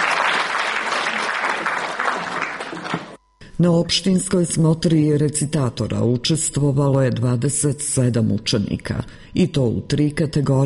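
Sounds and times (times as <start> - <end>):
audience applause at a community event: 0.0 - 3.2
speech: 3.6 - 10.6.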